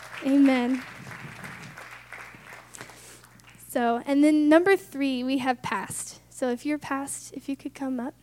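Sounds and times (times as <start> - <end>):
audience clapping: 0.0 - 3.7
speech: 0.2 - 1.0, 3.8 - 8.2.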